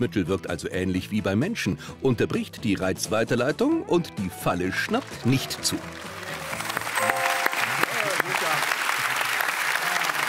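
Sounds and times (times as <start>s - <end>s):
speech: 0.0s - 6.1s
audience applause: 4.5s - 10.2s.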